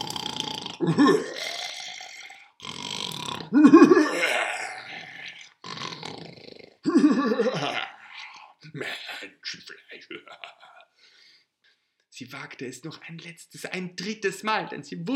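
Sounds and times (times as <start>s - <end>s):
voice imitating a devil's heavy monstrous snoring: 0.0s - 9.2s
speech: 0.8s - 1.5s, 3.5s - 4.1s, 12.6s - 15.1s.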